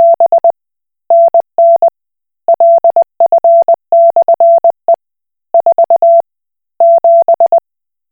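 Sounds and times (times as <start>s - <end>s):
Koch Morse code beeps: 0.0s - 0.5s, 2.5s - 4.8s, 5.6s - 6.2s, 6.8s - 7.6s.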